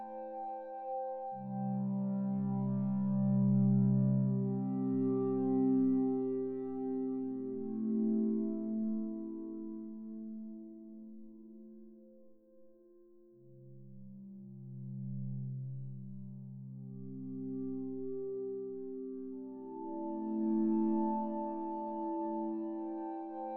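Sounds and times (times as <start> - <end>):
woodwind pad ambience: 0.0 - 10.7, 17.0 - 23.5.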